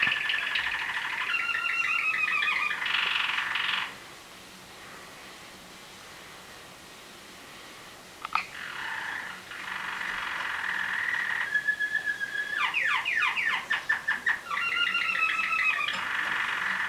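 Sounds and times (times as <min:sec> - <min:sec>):
canary singing: 0:00.0 - 0:04.0, 0:08.3 - 0:16.8.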